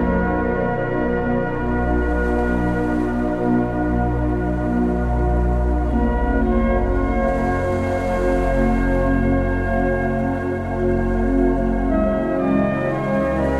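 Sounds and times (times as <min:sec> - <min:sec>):
gentle relaxing music with sustained tones and soft low drone: 0:00.0 - 0:13.5.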